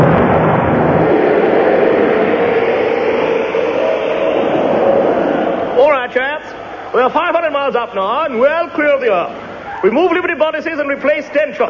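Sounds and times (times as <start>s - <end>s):
rocket being fired: 0.0s - 6.9s
speech: 7.9s - 11.6s.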